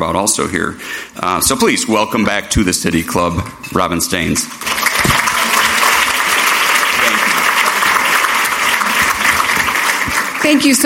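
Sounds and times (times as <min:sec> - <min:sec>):
speech: 0:00.0 - 0:05.2, 0:10.5 - 0:10.8
applause: 0:04.5 - 0:10.8.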